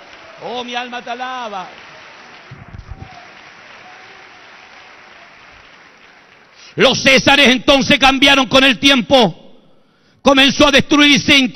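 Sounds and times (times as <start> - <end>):
audience applauding loudly: 0.0 - 6.9
speech: 0.4 - 1.8, 6.8 - 9.4, 10.2 - 11.5.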